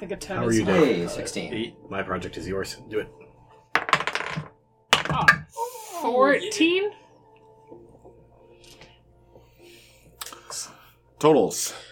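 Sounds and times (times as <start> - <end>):
speech: 0.0 - 3.2, 5.2 - 7.0, 10.6 - 11.9
dice clattering across a table: 3.8 - 5.1.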